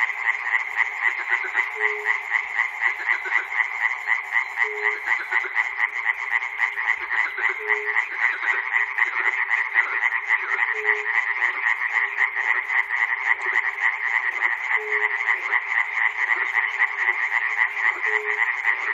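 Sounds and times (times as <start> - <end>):
frogs in Chernobyl: 0.0 - 18.9.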